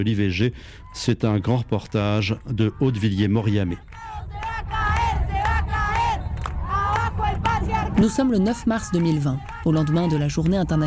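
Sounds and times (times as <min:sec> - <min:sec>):
speech: 0:00.0 - 0:04.1, 0:08.0 - 0:10.8
large crowd of protesters chanting: 0:02.4 - 0:10.8.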